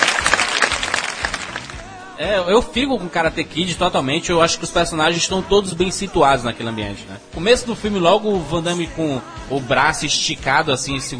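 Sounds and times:
audience applause: 0:00.0 - 0:01.9
speech: 0:02.2 - 0:11.1.

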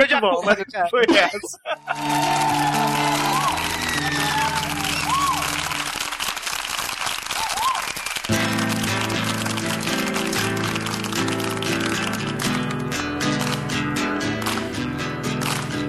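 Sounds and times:
laughter: 0:00.0 - 0:05.9
speech: 0:00.1 - 0:03.2
audience applause: 0:01.8 - 0:13.7, 0:14.4 - 0:14.8, 0:15.4 - 0:15.8
whistles and cheers: 0:01.9 - 0:06.2, 0:07.0 - 0:08.3.

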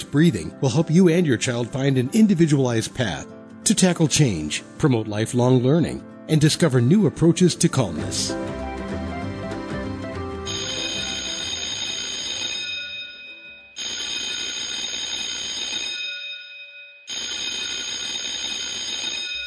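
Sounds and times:
speech: 0:00.0 - 0:08.6
school bell ringing: 0:10.5 - 0:19.4.

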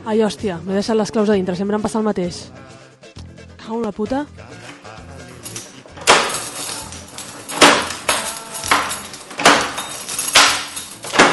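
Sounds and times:
speech: 0:00.0 - 0:02.8, 0:03.7 - 0:04.6
door that won't shut being pushed closed, thudding and rattling: 0:05.9 - 0:11.3.

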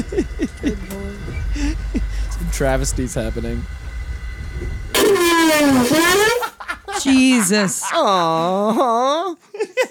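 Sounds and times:
laughter: 0:00.0 - 0:02.3, 0:06.2 - 0:09.8
toilet flushing on a Russian train: 0:00.0 - 0:06.8
speech: 0:02.5 - 0:03.8, 0:05.5 - 0:06.4, 0:07.0 - 0:09.5.

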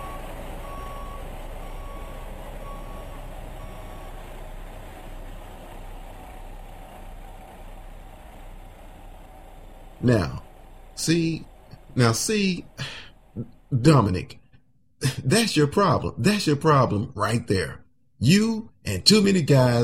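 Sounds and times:
backup alarm beeping: 0:00.0 - 0:04.2
truck engine rumbling: 0:00.0 - 0:19.8
speech: 0:10.0 - 0:10.4, 0:11.0 - 0:14.4, 0:15.2 - 0:19.8.

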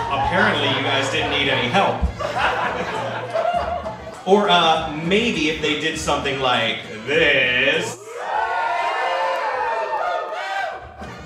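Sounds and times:
class screaming and yelling: 0:00.0 - 0:04.1, 0:07.1 - 0:11.2
laughter: 0:00.0 - 0:08.4, 0:10.1 - 0:11.2
speech: 0:00.3 - 0:08.0.

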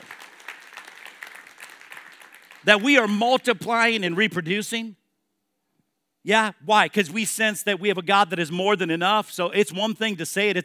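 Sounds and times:
audience applause: 0:00.0 - 0:02.8
speech: 0:02.6 - 0:05.0, 0:06.2 - 0:10.6.

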